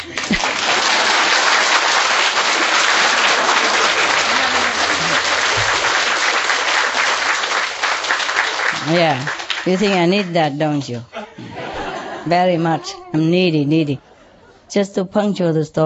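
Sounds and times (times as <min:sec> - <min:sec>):
laughter: 0:00.0 - 0:07.2, 0:09.7 - 0:14.7
audience applause: 0:00.0 - 0:10.6
speech: 0:08.9 - 0:11.6, 0:12.2 - 0:14.1, 0:14.7 - 0:15.8.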